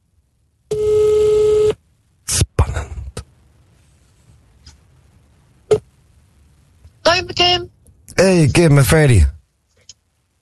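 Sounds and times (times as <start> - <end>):
phone call ringing tone held to microphone: 0.7 - 1.8
speech: 7.2 - 9.3.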